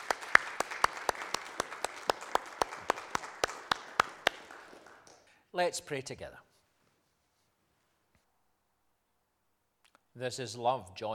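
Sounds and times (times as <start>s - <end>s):
audience round of applause: 0.0s - 5.3s
speech: 5.6s - 6.5s, 10.2s - 11.1s.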